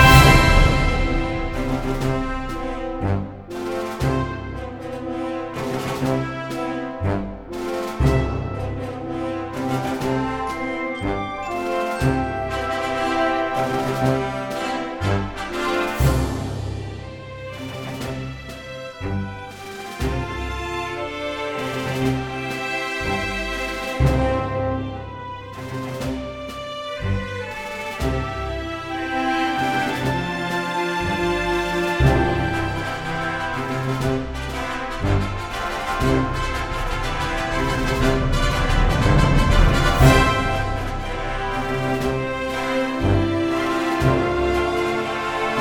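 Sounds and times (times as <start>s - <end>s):
march music: 0.0s - 45.5s.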